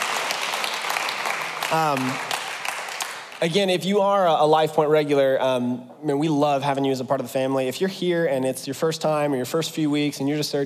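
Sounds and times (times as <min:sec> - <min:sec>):
audience clapping: 0:00.0 - 0:03.6
speech: 0:01.7 - 0:02.3, 0:03.4 - 0:10.6.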